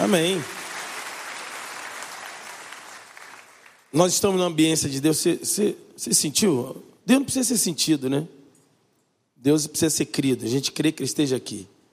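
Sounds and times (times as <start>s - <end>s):
audience applauding: 0.0s - 3.9s
speech: 0.1s - 0.6s, 3.9s - 8.4s, 9.4s - 11.8s.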